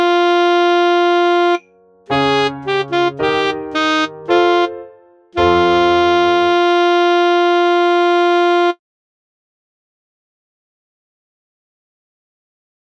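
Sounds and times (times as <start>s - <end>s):
saxophone playing a cossack dance tune: 0.0s - 8.8s.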